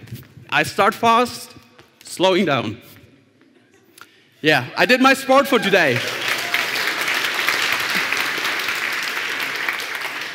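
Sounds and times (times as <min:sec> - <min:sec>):
speech: 0:00.5 - 0:02.9, 0:04.4 - 0:06.2
audience clapping: 0:05.4 - 0:10.3.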